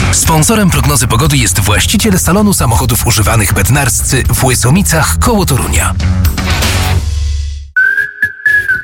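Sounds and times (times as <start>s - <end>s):
speech: 0.1s - 6.6s
person whistling a tune: 7.8s - 8.8s.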